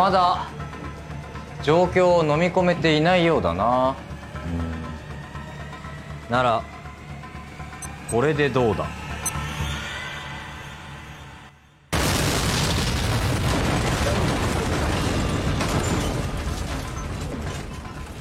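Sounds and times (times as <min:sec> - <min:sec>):
speech: 0:00.0 - 0:00.6, 0:01.6 - 0:04.7, 0:06.3 - 0:06.8, 0:08.1 - 0:09.0
explosion: 0:12.0 - 0:17.7.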